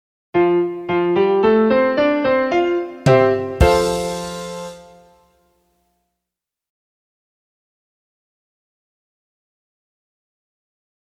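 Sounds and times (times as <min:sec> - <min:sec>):
music in F major: 0:00.4 - 0:05.4.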